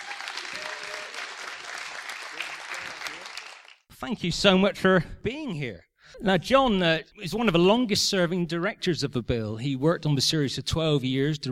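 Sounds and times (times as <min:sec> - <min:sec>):
audience applause: 0:00.0 - 0:03.9
speech: 0:04.0 - 0:11.5.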